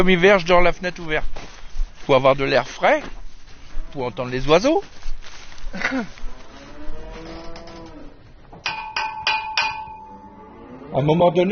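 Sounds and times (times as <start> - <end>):
speech: 0.0 - 1.4, 2.1 - 3.2, 3.9 - 5.0, 5.7 - 6.2, 10.9 - 11.5
banging on the bottom of a metal bucket: 8.6 - 10.0.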